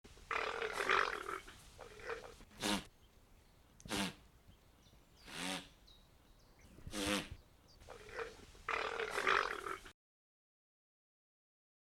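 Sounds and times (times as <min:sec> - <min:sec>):
guanaco calls: 0:00.2 - 0:02.9, 0:03.8 - 0:04.3, 0:05.2 - 0:05.8, 0:06.8 - 0:09.9.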